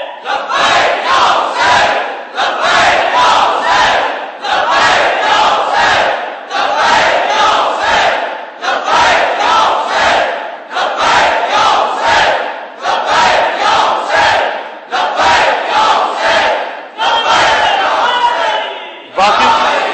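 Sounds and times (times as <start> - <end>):
crowd chanting religious slogans: 0.1 - 19.9.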